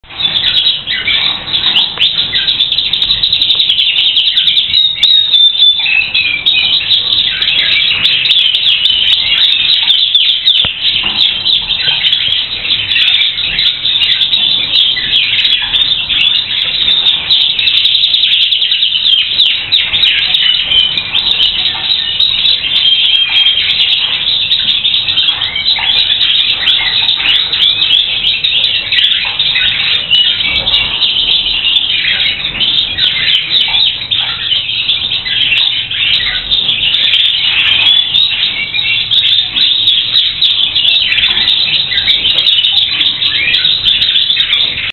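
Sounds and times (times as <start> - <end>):
canary singing: 0.0 - 44.9.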